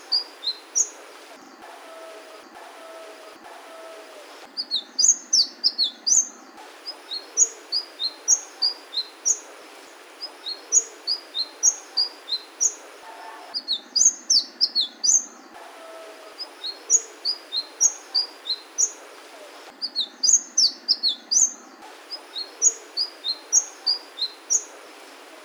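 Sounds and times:
sunbird song: 0.0 - 25.4.

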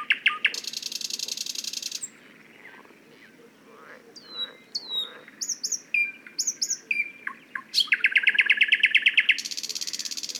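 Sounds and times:
Thrush nightingale song: 0.0 - 10.3.

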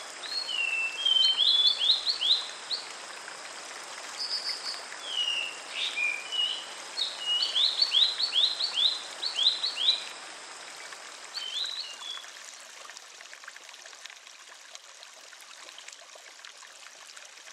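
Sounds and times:
Sulingan bird whistling song: 0.3 - 2.4, 4.2 - 10.0, 11.4 - 12.2.

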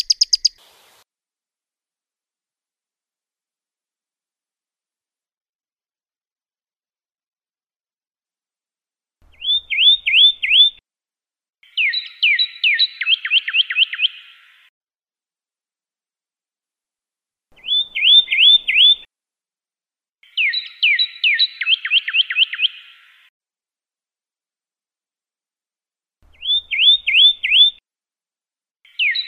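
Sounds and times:
Pyrrhuloxia song with downslurred whistles and rapid trill: 0.0 - 0.6, 9.3 - 10.8, 11.6 - 14.4, 17.6 - 19.1, 20.2 - 23.1, 26.4 - 27.8, 28.9 - 29.2.

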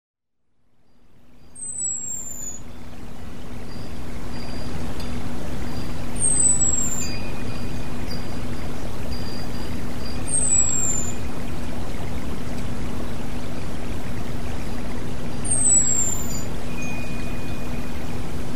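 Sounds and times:
female red-whiskered bulbul calling: 1.2 - 18.5.

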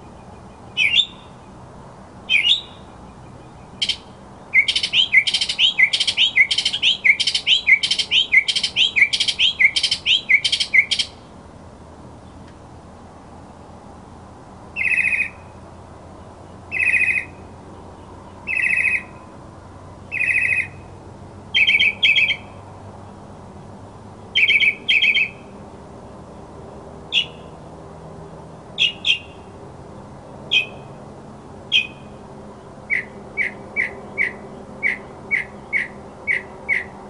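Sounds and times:
mockingbird singing: 0.0 - 1.6, 2.3 - 11.2, 14.8 - 15.4, 16.7 - 17.4, 18.4 - 19.2, 20.1 - 20.8, 21.5 - 22.5, 24.3 - 25.4, 27.1 - 27.5, 28.8 - 29.4, 30.5 - 30.9, 31.7 - 32.1, 32.9 - 37.0.

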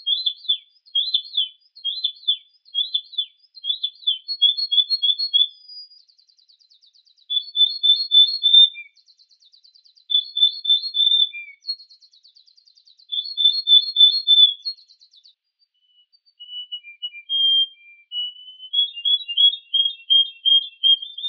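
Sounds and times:
Yorkshire canary song: 0.0 - 21.2.

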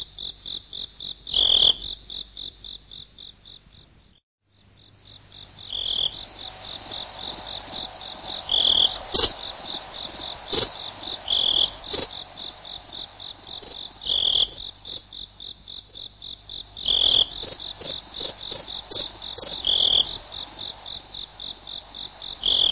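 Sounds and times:
slowed cricket chirps: 0.0 - 22.7.

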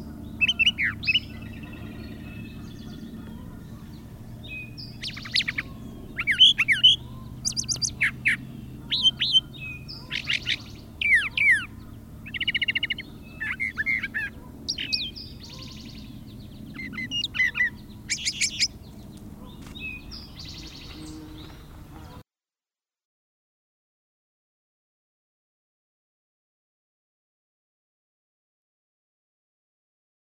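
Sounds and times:
brown thrasher song: 0.0 - 22.2.

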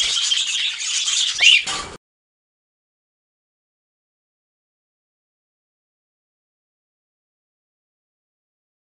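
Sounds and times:
budgerigar flock chattering: 0.0 - 1.8.

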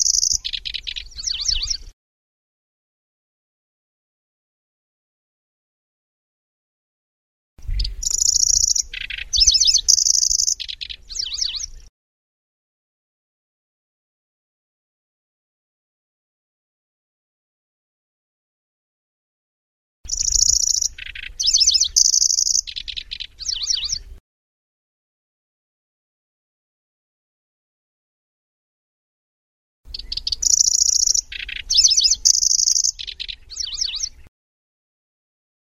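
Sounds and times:
Grasshopper warbler song: 0.0 - 1.9, 7.6 - 11.9, 20.1 - 24.2, 29.9 - 34.3.

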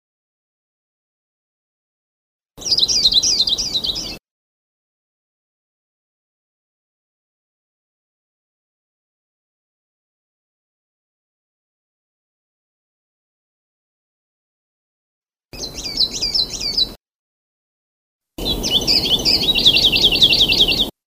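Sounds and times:
Sulawesi leaf warbler singing: 2.6 - 4.2, 15.6 - 17.0, 18.4 - 21.0.

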